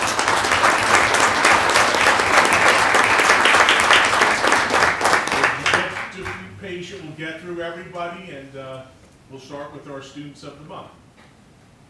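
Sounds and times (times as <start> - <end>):
audience round of applause: 0.0 - 6.5
speech: 7.3 - 11.0.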